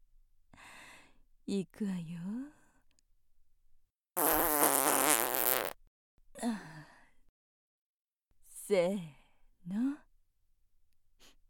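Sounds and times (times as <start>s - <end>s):
speech: 1.5s - 2.6s, 8.7s - 10.0s
fart: 4.2s - 5.8s.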